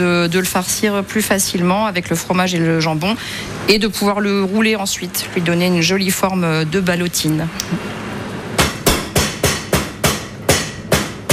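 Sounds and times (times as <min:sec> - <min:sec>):
speech: 0:00.0 - 0:08.0
mallet pounding chicken breast flat: 0:08.6 - 0:11.3.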